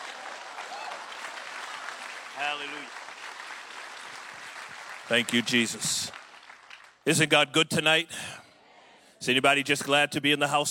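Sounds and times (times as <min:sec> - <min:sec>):
audience hand clapping: 0:00.0 - 0:07.2
speech: 0:02.4 - 0:03.0, 0:05.1 - 0:06.2, 0:07.1 - 0:08.4, 0:09.2 - 0:10.7.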